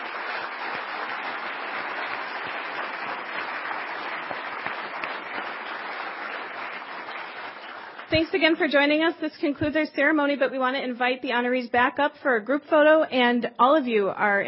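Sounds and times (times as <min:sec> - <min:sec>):
audience applause: 0:00.0 - 0:08.2
speech: 0:08.1 - 0:14.4.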